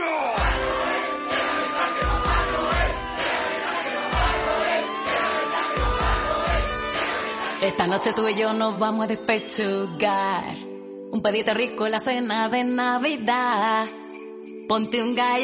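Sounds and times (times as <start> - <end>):
crowd screaming and yelling: 0.0 - 8.2
music with a steady pounding beat: 0.4 - 7.6
speech: 7.7 - 14.0, 14.7 - 15.4.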